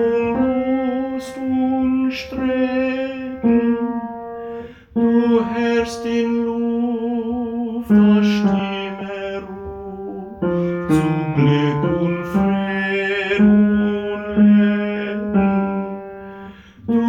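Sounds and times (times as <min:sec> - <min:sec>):
tenor singing: 0:00.0 - 0:17.0.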